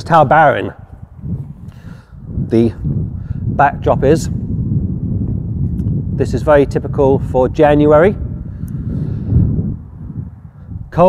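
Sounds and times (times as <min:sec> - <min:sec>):
speech: 0:00.0 - 0:01.4, 0:02.5 - 0:03.0, 0:03.6 - 0:04.4, 0:06.2 - 0:08.2
wind gusting and buffeting the microphone: 0:00.0 - 0:11.0.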